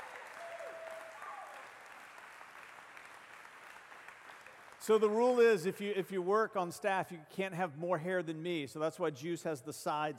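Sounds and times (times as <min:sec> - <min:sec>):
audience cheering: 0:00.0 - 0:02.0
audience applause: 0:00.0 - 0:05.0
speech: 0:04.8 - 0:10.1.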